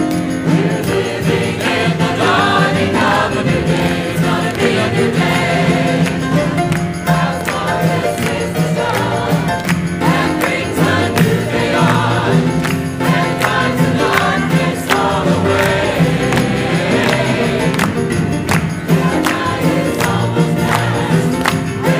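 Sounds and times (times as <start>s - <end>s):
choir singing: 0.2s - 21.9s.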